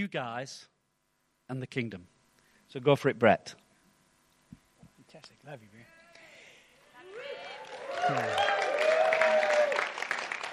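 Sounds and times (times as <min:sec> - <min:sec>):
speech: 0:00.0 - 0:00.7, 0:01.5 - 0:03.6, 0:05.1 - 0:05.9, 0:08.0 - 0:08.6
people calling out and whooping: 0:07.0 - 0:10.4
audience applause: 0:07.0 - 0:10.5.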